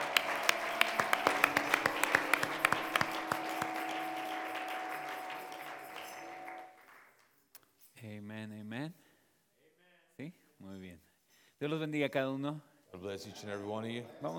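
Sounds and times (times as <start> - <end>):
steady tonal hum: 0.0 - 6.8
church congregation applauding: 0.0 - 7.4
speech: 11.6 - 14.3.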